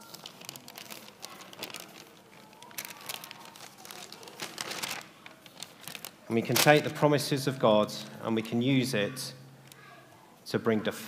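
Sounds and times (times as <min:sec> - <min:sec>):
paper being folded up by hand: 0:00.0 - 0:07.0
speech: 0:06.3 - 0:09.4, 0:10.5 - 0:11.0.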